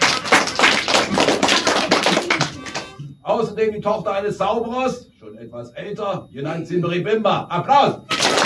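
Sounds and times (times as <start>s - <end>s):
crowd applauding: 0.0s - 3.0s, 8.1s - 8.4s
speech: 3.4s - 8.1s.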